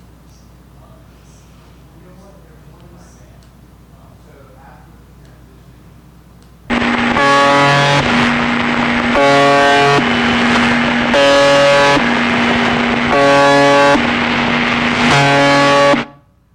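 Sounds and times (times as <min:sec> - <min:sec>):
constant radio static: 0:06.7 - 0:16.1
UVB-76 shortwave buzzer station droning buzz: 0:06.7 - 0:16.4.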